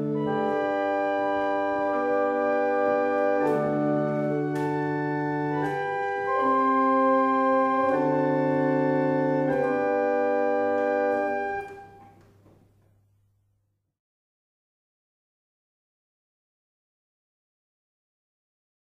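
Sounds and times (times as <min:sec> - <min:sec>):
German hymn on barrel organ: 0:00.0 - 0:12.4.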